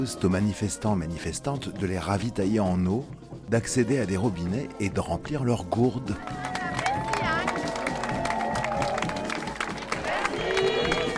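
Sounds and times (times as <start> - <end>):
speech: 0.0 - 6.7
crowd applauding a resident: 6.2 - 11.1.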